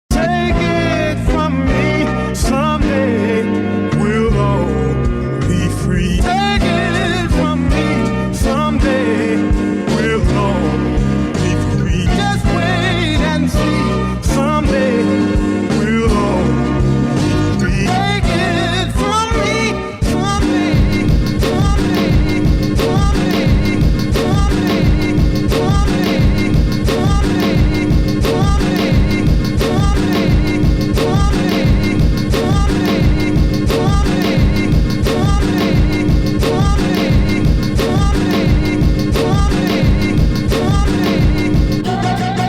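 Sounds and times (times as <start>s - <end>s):
instrumental music: 0.1s - 42.4s.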